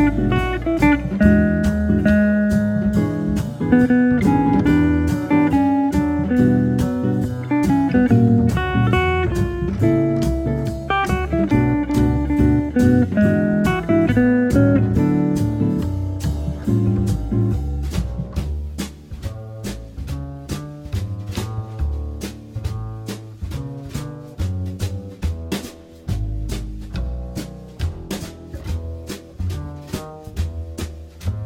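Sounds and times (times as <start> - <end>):
jazz guitar comping charleston rhythm: 0.0 - 31.4.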